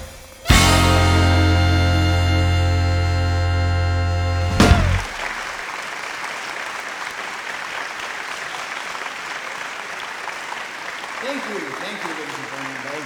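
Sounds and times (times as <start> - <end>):
sustained musical chord: 0.5 - 5.1
audience applause welcoming two podcast hosts: 4.5 - 13.0.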